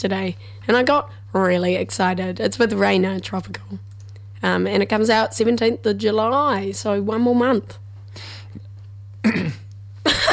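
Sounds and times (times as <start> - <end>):
speech: 0.0 - 8.6
steady low hum: 0.0 - 10.3
person coughing on spit stuck in the throat: 9.2 - 10.3.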